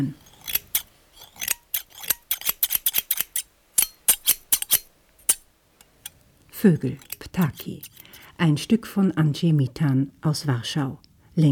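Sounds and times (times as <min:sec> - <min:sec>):
speech: 0:00.0 - 0:00.2, 0:06.6 - 0:11.5
cutting through wire mesh: 0:00.0 - 0:08.2.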